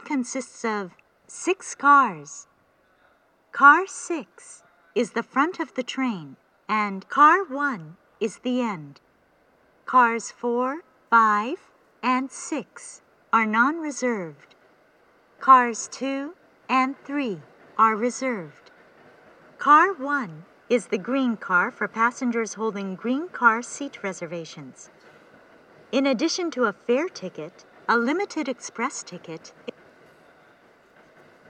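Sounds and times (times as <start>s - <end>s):
limited express train turning at Kyoto station: 0.0s - 31.4s.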